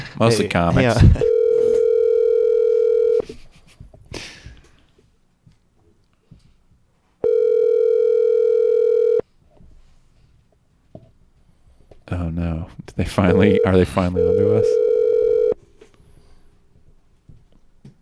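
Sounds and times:
speech: 0.2s - 1.3s, 13.1s - 14.9s
telephone dial tone while calling: 1.2s - 3.2s, 7.2s - 9.2s, 13.3s - 15.6s.

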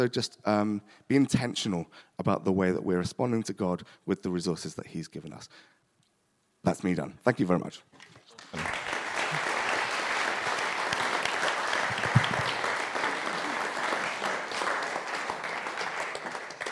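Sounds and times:
speech: 0.0s - 5.8s, 6.6s - 8.9s
audience applause: 8.2s - 16.7s.

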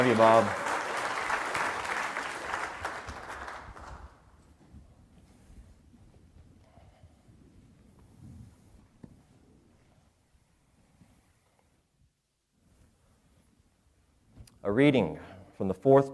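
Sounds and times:
speech: 0.0s - 0.6s, 14.7s - 16.1s
church congregation applauding a new family: 0.0s - 4.4s.

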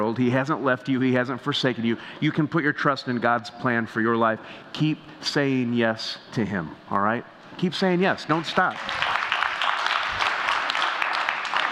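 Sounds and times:
speech: 0.1s - 9.0s
audience applause: 8.3s - 11.7s.

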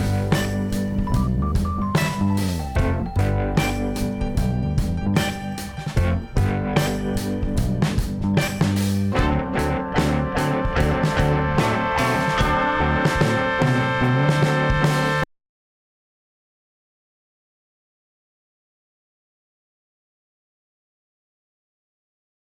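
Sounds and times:
instrumental drum battery: 0.0s - 15.2s.

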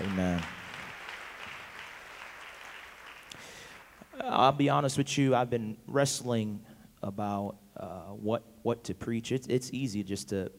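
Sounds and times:
audience applause: 0.0s - 4.1s
speech: 4.2s - 10.5s.

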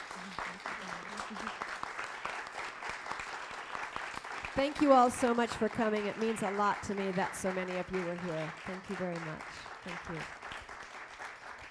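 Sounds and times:
audience applause: 0.0s - 11.6s
speech: 4.6s - 10.4s.

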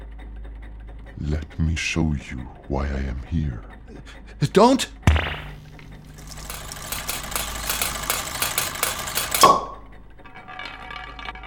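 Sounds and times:
speech: 1.2s - 5.3s
marble machine rattling: 5.2s - 11.4s.

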